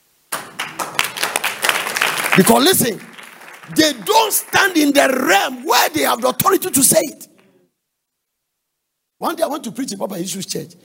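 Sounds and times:
group clapping: 0:00.3 - 0:07.6
speech: 0:02.4 - 0:03.1, 0:03.7 - 0:07.3, 0:09.2 - 0:10.8.

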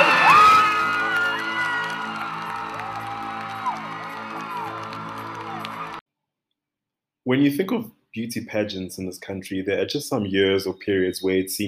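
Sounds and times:
audience applause: 0:00.0 - 0:06.0
speech: 0:07.3 - 0:11.6.

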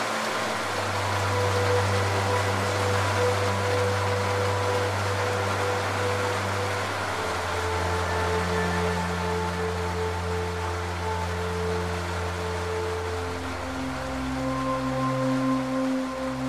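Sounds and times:
rain: 0:00.0 - 0:16.4.

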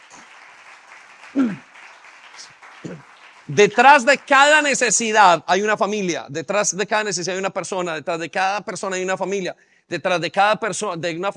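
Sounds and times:
audience applause: 0:00.0 - 0:05.2
speech: 0:01.3 - 0:01.6, 0:02.8 - 0:11.3.

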